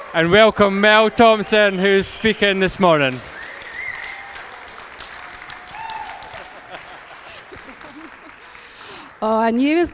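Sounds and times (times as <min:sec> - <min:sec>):
round of applause: 0:00.0 - 0:09.3
speech: 0:00.1 - 0:03.4, 0:09.2 - 0:09.9
laughter: 0:06.0 - 0:09.0.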